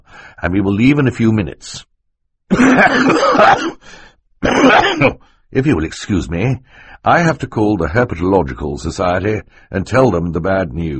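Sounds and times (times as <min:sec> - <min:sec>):
speech: 0:00.4 - 0:01.9, 0:02.5 - 0:10.9
throaty cough into a handkerchief: 0:02.5 - 0:05.2.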